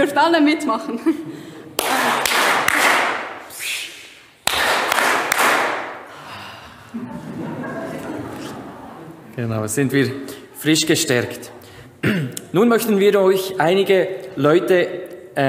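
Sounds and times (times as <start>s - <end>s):
speech: 0.0s - 2.2s, 9.4s - 15.4s
hand claps: 1.8s - 3.5s, 4.4s - 6.1s
laughter: 6.7s - 11.0s.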